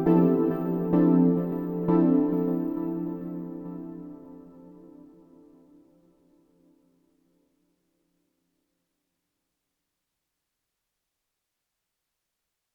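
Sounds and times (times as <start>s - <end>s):
Novation Peak synthesizer 5 note unison chords with 8 voices: 0.0s - 4.3s.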